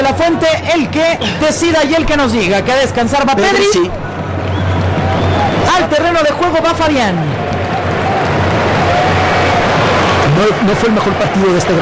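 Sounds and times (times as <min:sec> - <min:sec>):
speech: 0:00.1 - 0:04.1, 0:05.7 - 0:07.4, 0:10.4 - 0:11.8
stadium crowd booing at a football match: 0:03.4 - 0:11.8
timid applause in a stadium crowd: 0:03.6 - 0:11.8.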